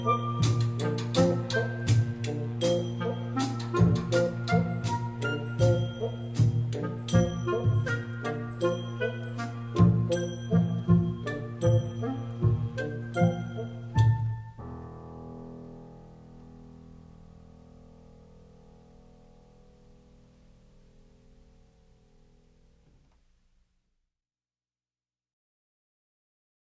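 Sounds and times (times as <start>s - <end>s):
Chinese dance music: 0.0s - 13.8s.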